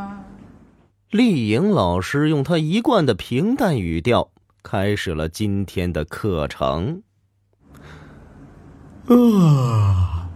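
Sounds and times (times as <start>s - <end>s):
speech: 1.1s - 7.1s, 9.1s - 10.1s
stag beetle character giving a big yawn: 9.0s - 10.3s.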